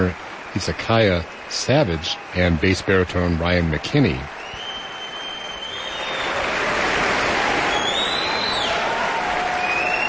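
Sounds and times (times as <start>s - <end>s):
speech: 0.0s - 4.4s
audience applauding: 0.0s - 10.0s
audience shrill whistles: 4.4s - 6.5s, 7.6s - 8.9s, 9.5s - 10.0s.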